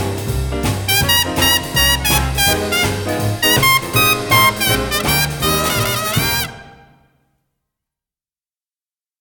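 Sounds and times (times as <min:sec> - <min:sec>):
trumpet: 0:00.9 - 0:07.2.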